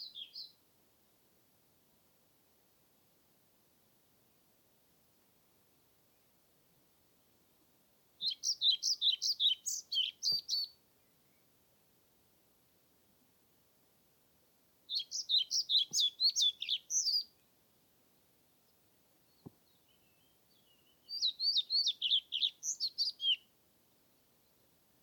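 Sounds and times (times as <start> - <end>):
European Pied Flycatcher song: 0.0 - 0.6, 8.2 - 11.9, 14.9 - 17.6, 18.2 - 24.8.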